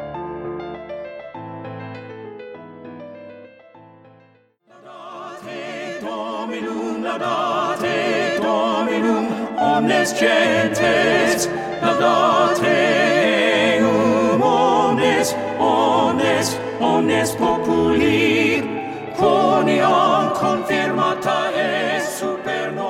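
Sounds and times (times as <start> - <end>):
alto voice singing: 4.7 - 22.8.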